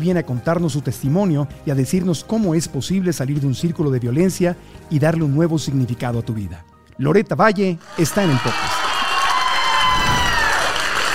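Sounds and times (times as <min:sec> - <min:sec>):
speech: 0:00.0 - 0:08.8
audience applause: 0:07.8 - 0:11.1.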